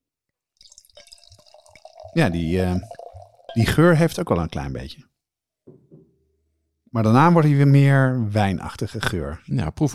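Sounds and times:
fizzy drink poured into a glass: 0.6s - 4.2s
speech: 2.1s - 3.0s, 3.6s - 5.1s, 6.9s - 9.9s.

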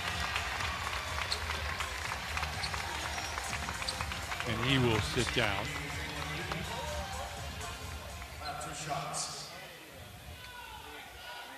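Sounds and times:
arena fans applauding: 0.0s - 8.4s
speech: 4.5s - 5.8s.

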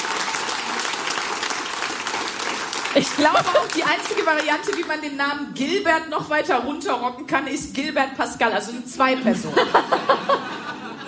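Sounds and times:
audience applause: 0.0s - 5.0s
laughter: 2.9s - 4.2s, 9.1s - 11.0s
speech: 3.0s - 10.6s.

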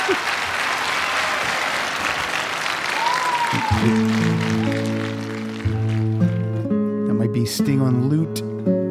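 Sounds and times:
concert crowd applause: 0.0s - 6.6s
speech: 3.7s - 5.0s, 7.4s - 8.8s.

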